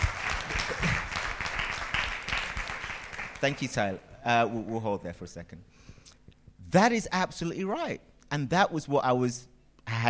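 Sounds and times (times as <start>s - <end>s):
audience applause: 0.0s - 3.8s
speech: 3.4s - 5.8s, 6.7s - 10.0s.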